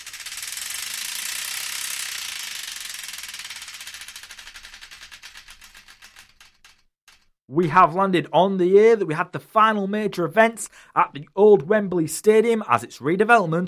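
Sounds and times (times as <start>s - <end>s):
prize wheel spinning on a radio show: 0.0s - 7.4s
speech: 7.5s - 13.6s.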